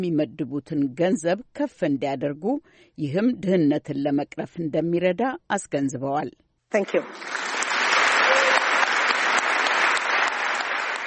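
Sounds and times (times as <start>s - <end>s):
speech: 0.0s - 7.6s
large crowd applauding after a speech by World Health Organization head Margaret Chan: 6.9s - 11.0s.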